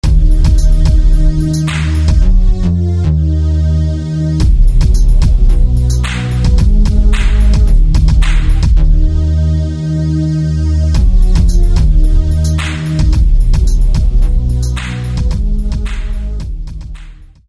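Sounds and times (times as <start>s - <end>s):
bass: 0.0s - 17.4s.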